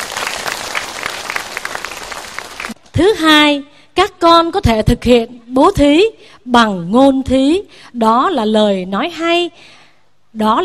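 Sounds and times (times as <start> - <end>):
audience applause: 0.0 - 2.8
speech: 3.0 - 10.6.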